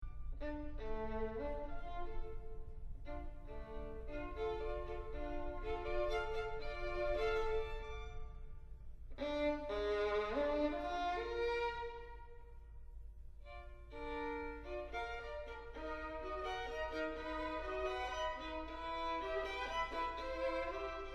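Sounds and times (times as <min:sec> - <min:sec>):
violin: 0:00.0 - 0:21.1.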